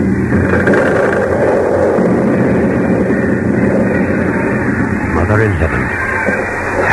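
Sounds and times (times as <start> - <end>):
building crashing and caving in: 0.0 - 6.9.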